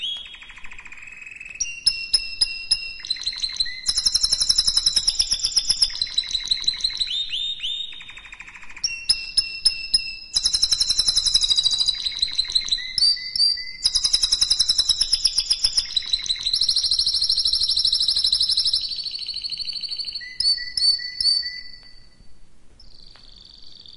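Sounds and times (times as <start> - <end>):
canary song: 0.0 - 23.9.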